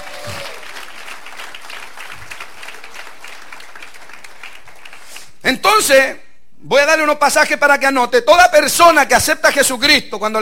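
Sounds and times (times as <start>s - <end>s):
audience applause: 0.0s - 5.3s
speech: 5.5s - 10.3s.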